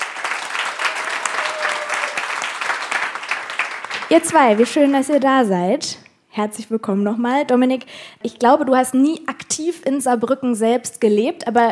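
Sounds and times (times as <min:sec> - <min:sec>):
audience applause: 0:00.0 - 0:05.1
speech: 0:04.1 - 0:11.7.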